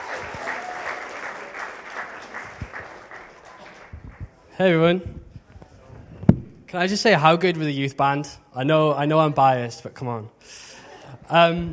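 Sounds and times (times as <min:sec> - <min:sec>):
crowd applauding welcoming a speaker: 0:00.0 - 0:04.4
speech: 0:04.6 - 0:05.2, 0:06.7 - 0:10.6, 0:11.3 - 0:11.7.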